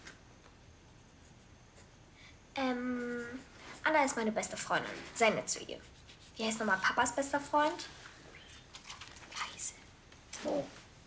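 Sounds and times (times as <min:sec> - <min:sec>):
pen scratching on paper writing a list: 0:00.8 - 0:02.2, 0:02.9 - 0:07.5
speech: 0:02.6 - 0:03.0, 0:03.9 - 0:08.0.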